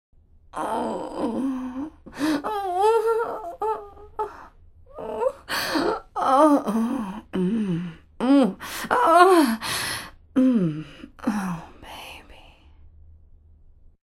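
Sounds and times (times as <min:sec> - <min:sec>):
old vocals: 0:00.6 - 0:12.4.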